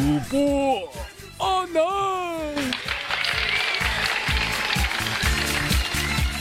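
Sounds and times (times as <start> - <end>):
speech: 0.2 - 2.0
audience applause: 2.6 - 6.3.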